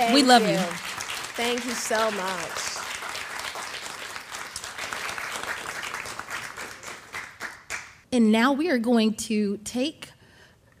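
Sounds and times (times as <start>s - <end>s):
speech: 0.0s - 2.7s, 8.1s - 10.1s
audience applause: 0.0s - 7.9s.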